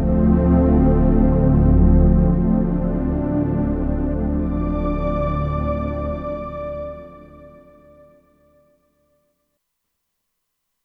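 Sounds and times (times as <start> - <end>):
Kurzweil K2500X synthesizer pad: 0.0 - 8.0.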